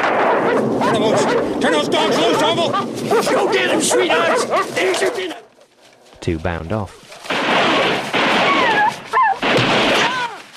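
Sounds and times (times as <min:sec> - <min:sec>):
gunfire in a night shootout in the woods: 0:00.0 - 0:05.0, 0:07.2 - 0:10.3
speech: 0:00.6 - 0:05.5, 0:06.2 - 0:07.0.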